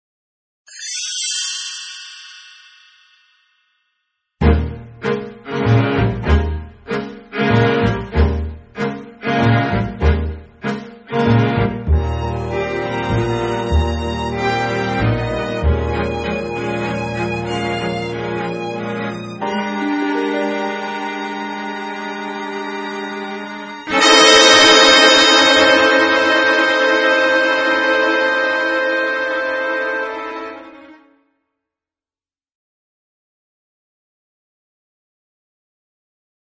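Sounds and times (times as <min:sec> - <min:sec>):
instrumental underscore music: 0:04.4 - 0:31.1.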